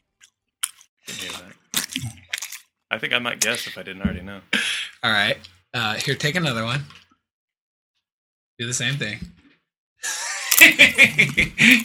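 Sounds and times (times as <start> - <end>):
person chewing food with open mouth: 0.0 - 2.8
speech: 2.9 - 7.0, 8.6 - 9.4, 10.0 - 11.8
laughter: 10.0 - 11.8.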